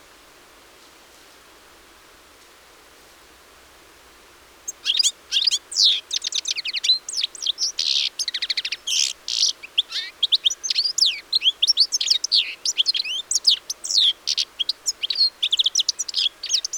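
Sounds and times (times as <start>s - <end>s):
European goldfinch Carduelis carduelis twittering: 4.7s - 16.7s.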